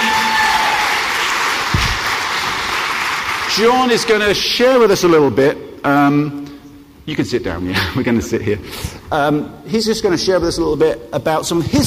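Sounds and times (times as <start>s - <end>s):
audience applause for a guest speaker: 0.0s - 4.1s
speech: 3.6s - 6.5s, 7.1s - 11.8s.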